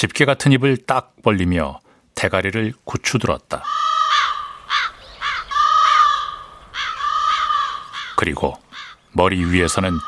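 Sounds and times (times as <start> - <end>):
speech: 0.0 - 3.8, 8.2 - 10.0
crows cawing: 3.6 - 10.0.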